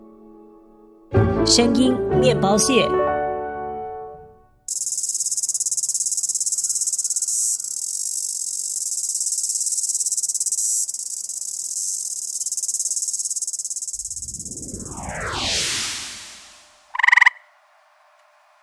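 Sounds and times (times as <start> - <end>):
speech: 1.4 - 3.0
insect chirping: 4.7 - 15.1, 15.7 - 17.5.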